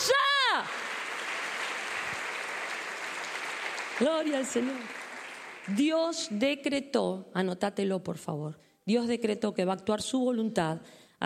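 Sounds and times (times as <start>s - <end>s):
audience applause: 0.4s - 5.8s
speech: 4.0s - 5.0s, 5.6s - 11.2s.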